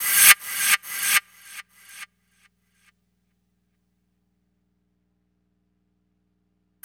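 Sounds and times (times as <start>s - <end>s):
energetic trance percussion: 0.0s - 2.0s.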